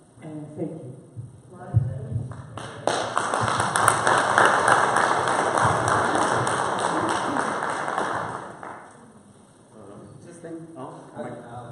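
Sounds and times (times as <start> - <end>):
speech: 0.5 - 1.0
crowd applause: 2.3 - 9.0.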